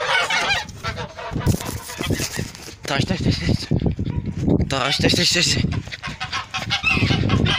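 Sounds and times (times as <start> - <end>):
goose honking: 0.0 - 2.4, 4.8 - 7.5
speech: 2.9 - 5.8.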